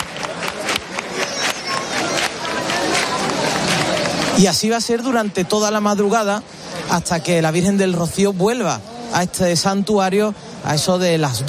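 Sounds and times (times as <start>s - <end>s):
crowd clapping hands rhythmically: 0.0s - 5.4s
crowd chatter: 0.0s - 11.4s
speech: 4.4s - 11.4s.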